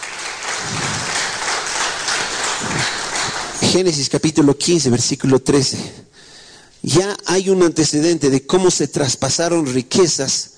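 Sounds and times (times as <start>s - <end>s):
audience applause: 0.0s - 3.8s
speech: 3.7s - 6.2s, 6.8s - 10.5s.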